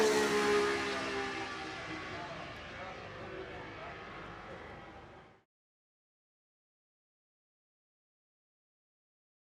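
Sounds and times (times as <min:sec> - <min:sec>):
Matra MS670B V12 racing engine screaming: 0:00.0 - 0:04.2.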